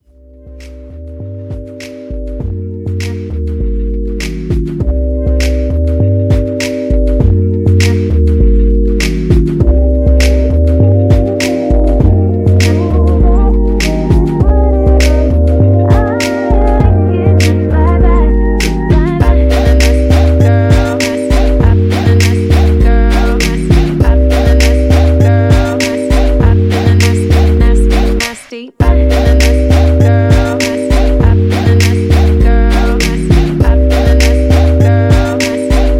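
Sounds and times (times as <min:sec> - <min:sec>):
twerk music mix: 0:00.4 - 0:35.9.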